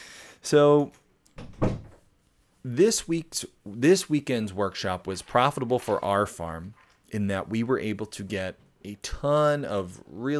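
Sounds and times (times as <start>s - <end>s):
speech: 0.5s - 1.7s, 2.6s - 10.3s
studio door swinging shut: 1.4s - 2.0s.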